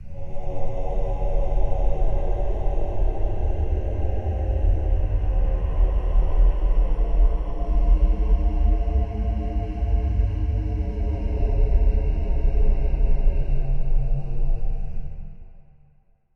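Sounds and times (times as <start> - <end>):
deep bassy monster howl: 0.0 - 15.3.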